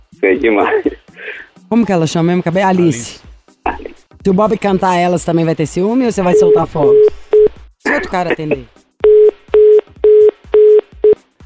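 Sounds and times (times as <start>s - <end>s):
speech: 0.2s - 1.0s, 1.7s - 3.2s, 4.2s - 7.2s, 7.9s - 8.8s
telephone busy tone: 6.3s - 7.5s, 9.0s - 11.2s.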